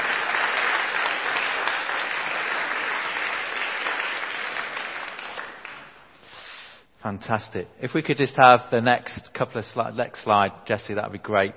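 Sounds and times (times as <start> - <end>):
audience applause: 0.0 - 6.0
speech: 7.0 - 11.5.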